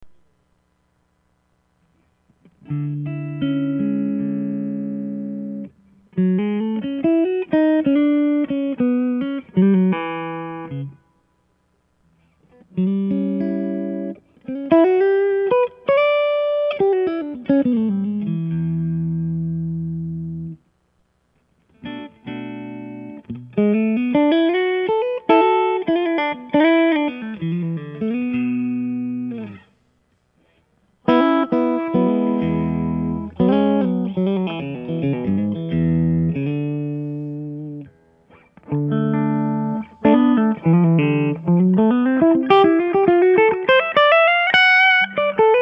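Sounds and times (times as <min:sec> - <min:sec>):
clean amplifier tone: 0:00.0 - 0:45.6.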